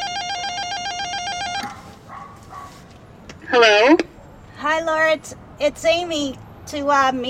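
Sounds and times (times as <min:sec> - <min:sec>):
apartment door buzzer: 0:00.0 - 0:01.8
speech: 0:05.1 - 0:07.2.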